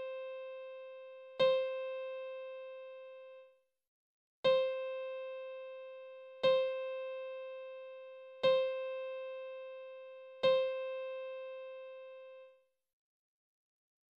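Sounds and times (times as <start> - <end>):
piano in C: 0.0 - 3.3, 4.5 - 12.5.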